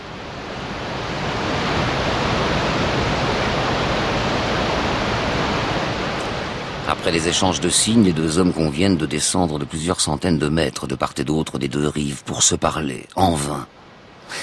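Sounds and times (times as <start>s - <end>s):
mountain torrent rushing water: 0.0s - 11.2s
speech: 7.0s - 14.4s.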